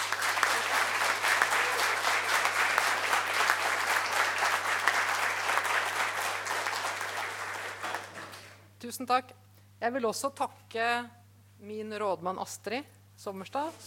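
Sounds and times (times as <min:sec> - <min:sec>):
audience applause: 0:00.0 - 0:08.6
speech: 0:08.9 - 0:13.8.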